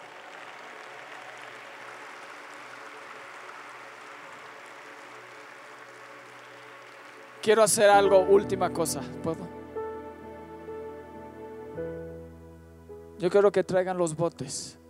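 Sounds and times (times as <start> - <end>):
audience applause: 0.0 - 7.7
speech: 7.4 - 9.6, 13.2 - 14.8.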